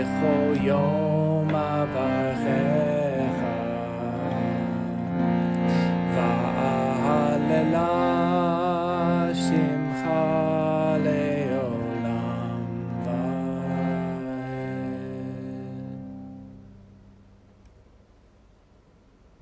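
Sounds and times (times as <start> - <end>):
chanting: 0.0 - 5.0, 5.7 - 16.0.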